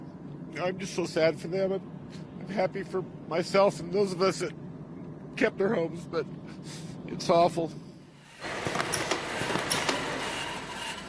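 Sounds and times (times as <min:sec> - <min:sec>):
speech: 0:00.6 - 0:04.6, 0:05.4 - 0:07.8
conveyor belt in a greenhouse creaking and rattling: 0:08.2 - 0:11.0.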